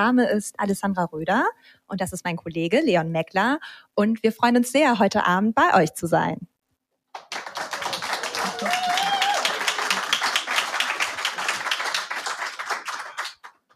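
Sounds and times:
speech: 0.0 - 6.5
live audience applause: 7.2 - 13.7.

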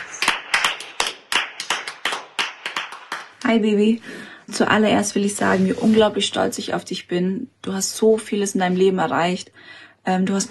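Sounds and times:
hands clapping: 0.0 - 3.6
speech: 3.5 - 10.4.

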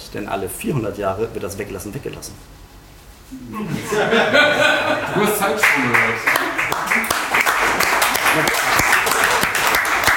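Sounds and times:
speech: 0.1 - 2.7, 3.3 - 6.4
laughter: 3.5 - 9.5
audience applause: 5.4 - 10.1.

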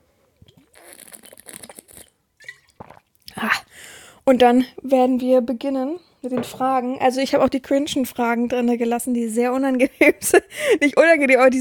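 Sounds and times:
faint mouth and throat sounds: 0.4 - 3.7
person slurping a drink: 0.4 - 3.7
speech: 4.3 - 11.5.

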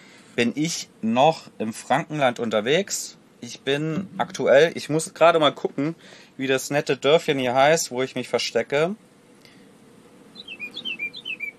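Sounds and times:
speech: 0.4 - 9.1
bird chirping: 10.3 - 11.5.

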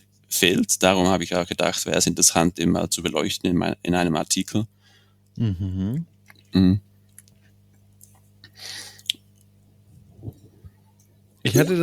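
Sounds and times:
speech: 0.3 - 4.8, 5.4 - 6.9, 11.4 - 11.8
person drinking from a water bottle: 5.4 - 7.4, 8.1 - 9.3.

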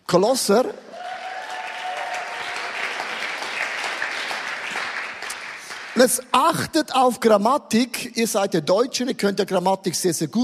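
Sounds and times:
speech: 0.1 - 0.8, 6.0 - 10.4
audience clapping: 1.0 - 6.4.

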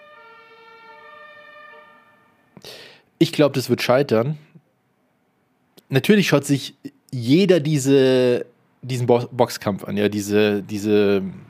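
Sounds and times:
fire engine siren passing by: 0.0 - 2.6
speech: 2.6 - 4.5, 5.9 - 11.4.

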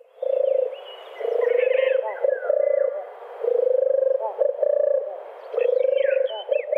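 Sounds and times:
birds chirping and whistling: 0.0 - 3.1, 5.4 - 6.7
dove cooing: 0.0 - 6.7.

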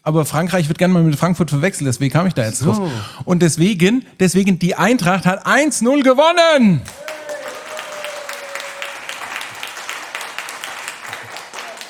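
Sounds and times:
speech: 0.0 - 7.2
audience applause: 6.9 - 11.8.

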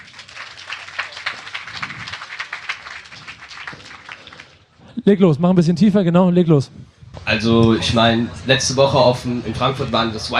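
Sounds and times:
audience applause: 0.0 - 4.7
speech: 5.1 - 10.3.

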